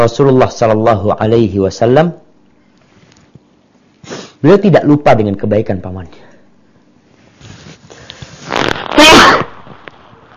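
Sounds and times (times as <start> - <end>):
speech: 0.0 - 2.2, 4.4 - 6.3
person sneezing during an Islamic sermon: 4.0 - 4.4, 8.5 - 9.7.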